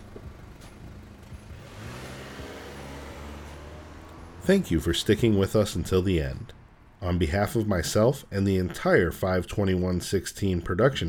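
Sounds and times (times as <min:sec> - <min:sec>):
car engine accelerating and pulling away: 0:00.0 - 0:07.0
speech: 0:04.4 - 0:11.0.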